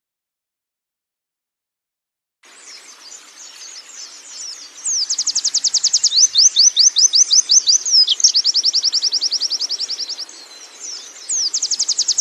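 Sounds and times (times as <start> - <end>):
canary song with fast high trills and rattling trill: 2.6 - 12.1.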